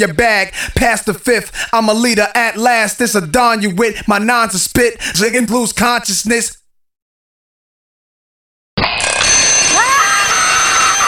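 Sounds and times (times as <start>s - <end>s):
speech: 0.0s - 6.6s
alarm clock ringing: 8.8s - 11.0s.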